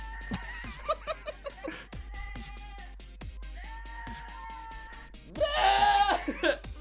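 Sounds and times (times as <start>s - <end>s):
laughter: 0.3s - 2.0s, 6.1s - 6.7s
goat screaming like a human: 4.3s - 6.3s.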